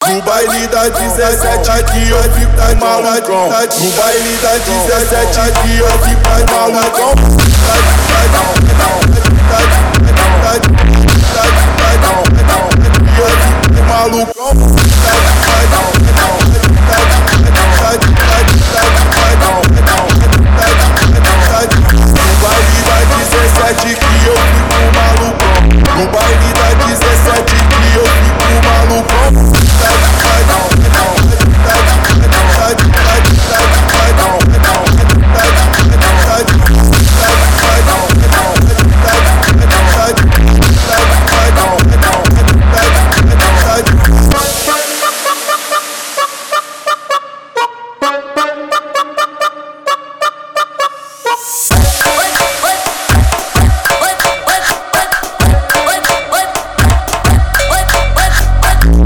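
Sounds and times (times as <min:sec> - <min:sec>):
Brazilian funk music: 0:00.0 - 0:03.0, 0:03.7 - 0:59.0.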